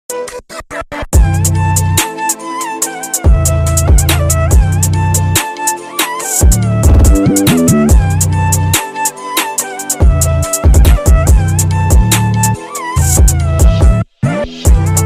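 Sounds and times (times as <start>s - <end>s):
Indian drill beat instrumental: 1.2s - 13.9s.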